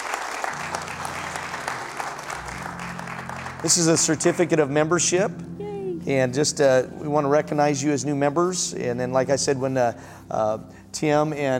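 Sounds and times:
audience applause: 0.0 - 4.5
speech: 3.6 - 11.5.

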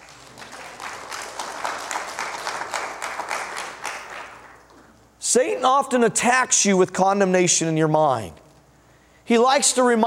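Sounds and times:
audience applause: 0.0 - 4.8
speech: 5.3 - 8.4, 9.3 - 10.0.

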